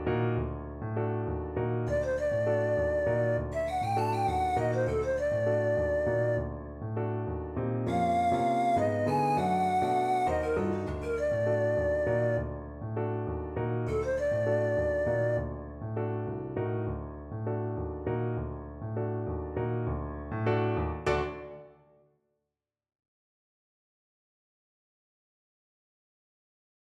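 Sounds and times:
piano: 0:00.0 - 0:22.1
flute: 0:01.9 - 0:07.3, 0:07.9 - 0:16.3.

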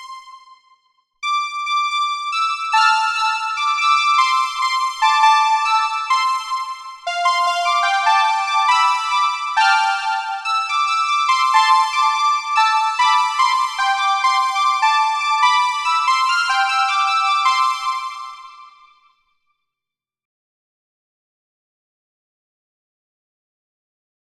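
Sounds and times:
bright synth: 0:01.3 - 0:18.8.

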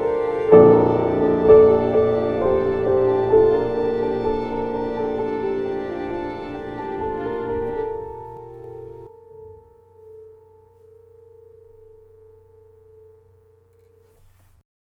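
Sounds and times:
dramatic scene music: 0:00.0 - 0:10.6.

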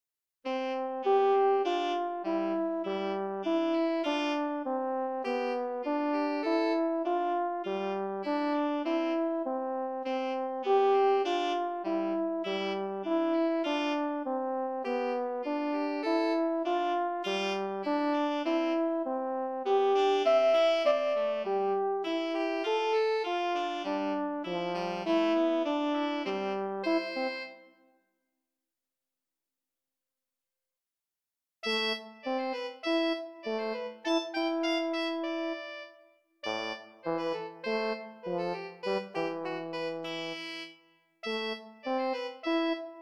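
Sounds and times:
horn: 0:00.5 - 0:27.8, 0:31.6 - 0:43.0
saxophone: 0:00.5 - 0:27.8, 0:31.6 - 0:43.0.

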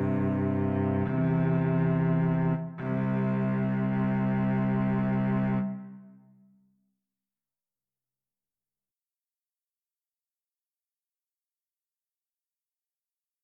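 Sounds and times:
solo cello soliloquy: 0:00.0 - 0:06.3.

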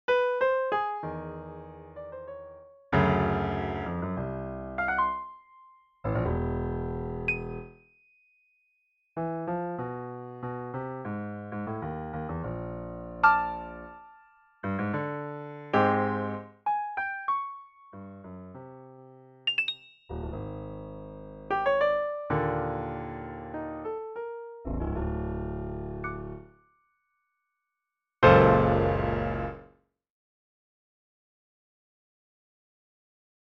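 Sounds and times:
short piano piece: 0:00.1 - 0:07.8, 0:09.2 - 0:26.5, 0:28.2 - 0:29.7.

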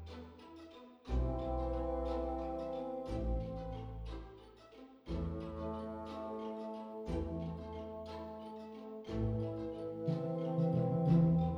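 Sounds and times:
slow music with solo horn: 0:01.2 - 0:04.1, 0:05.3 - 0:11.5.

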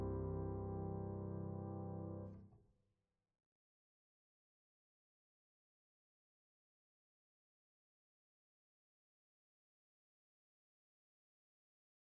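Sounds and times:
music in Lydian mode: 0:00.0 - 0:02.4.

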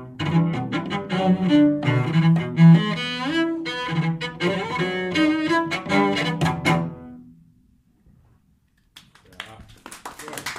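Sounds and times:
cello: 0:00.0 - 0:08.4.

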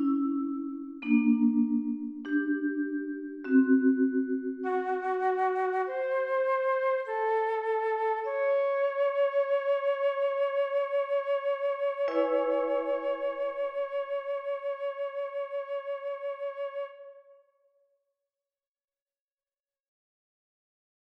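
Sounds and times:
vibraphone: 0:00.0 - 0:07.1, 0:08.2 - 0:15.0
flute etude: 0:03.8 - 0:17.5.

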